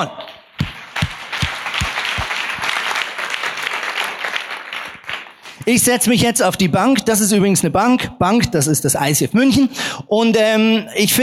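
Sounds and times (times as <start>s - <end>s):
speech: 0.0s - 0.2s, 5.6s - 11.2s
audience applause: 0.6s - 5.6s.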